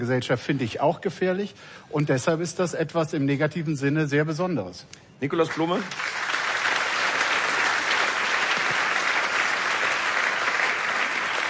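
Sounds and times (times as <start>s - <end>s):
speech: 0.0s - 6.2s
audience applause: 5.5s - 11.4s.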